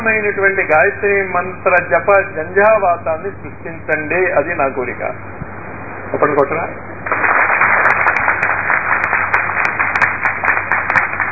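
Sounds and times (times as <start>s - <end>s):
speech: 0.0s - 5.4s, 6.1s - 7.2s
audience clapping at a Telugu religious discourse: 7.0s - 11.3s.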